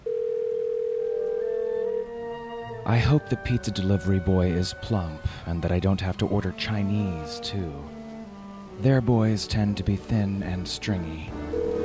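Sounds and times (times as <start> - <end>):
telephone dial tone as a phone call is made: 0.0 - 2.1, 11.5 - 11.8
soft phone tone: 0.0 - 2.3, 11.4 - 11.8
speech: 2.9 - 8.0, 8.8 - 11.8.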